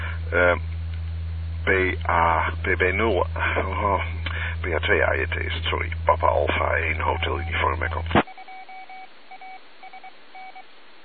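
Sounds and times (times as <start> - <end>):
speech: 0.3 - 0.7, 1.6 - 8.2
radio call tone generator beeps: 6.9 - 10.6.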